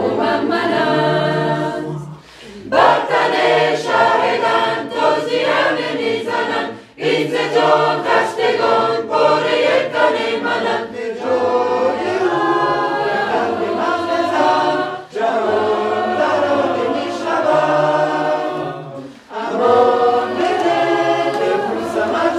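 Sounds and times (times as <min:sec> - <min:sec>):
voices singing tutti: 0:00.0 - 0:22.3.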